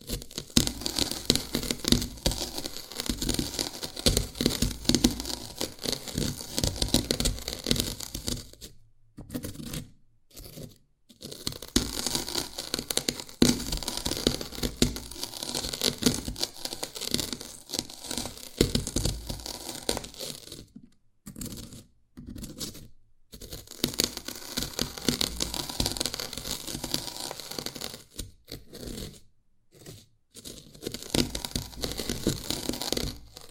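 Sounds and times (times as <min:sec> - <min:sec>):
Dalgona candy being tapped and cracked: 0:00.0 - 0:08.6, 0:11.2 - 0:20.7, 0:23.5 - 0:28.1, 0:30.5 - 0:33.4.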